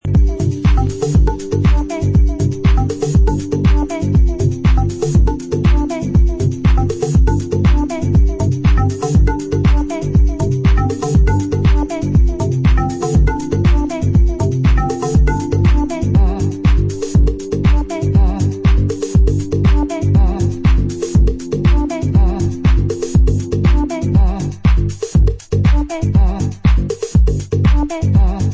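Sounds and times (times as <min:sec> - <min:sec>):
instrumental dub music: 0:00.0 - 0:28.5.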